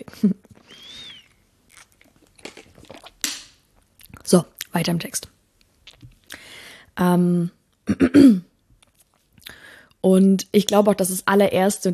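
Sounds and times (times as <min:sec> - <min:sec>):
speech: 0:00.1 - 0:01.0, 0:04.3 - 0:05.3, 0:07.0 - 0:08.5, 0:10.0 - 0:11.9
sipping a drink with mouth and swallowing noises: 0:00.4 - 0:03.2.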